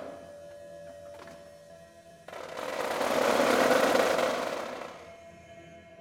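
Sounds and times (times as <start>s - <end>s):
bagpipes playing: 2.3s - 5.1s.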